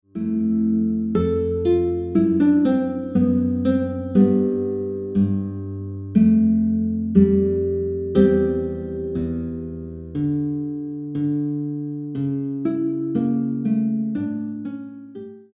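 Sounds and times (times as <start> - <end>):
classical guitar piece: 0.0 - 15.5.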